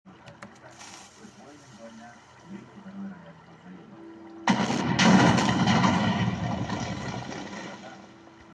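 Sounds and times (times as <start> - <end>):
Minecraft TNT explosions: 4.4 - 8.1.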